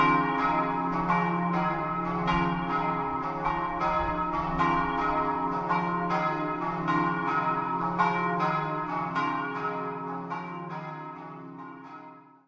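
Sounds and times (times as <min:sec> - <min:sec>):
bells in Ziracco: 0:00.0 - 0:12.4.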